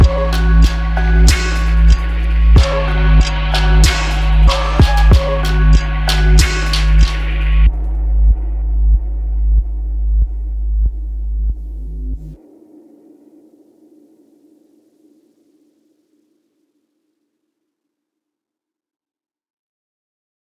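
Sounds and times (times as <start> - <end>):
instrumental music: 0.0 - 12.3.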